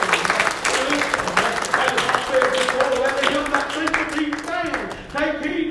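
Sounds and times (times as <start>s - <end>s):
audience hand clapping: 0.0s - 5.6s.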